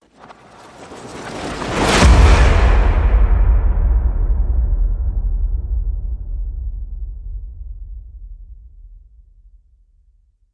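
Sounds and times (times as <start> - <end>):
horror hit: 1.6 - 9.2.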